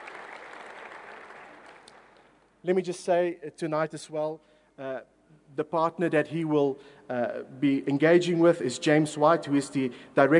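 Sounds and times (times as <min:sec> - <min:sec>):
audience applauding to welcome a guest at a Christian apologetics event: 0:00.0 - 0:02.3
speech: 0:02.6 - 0:10.3.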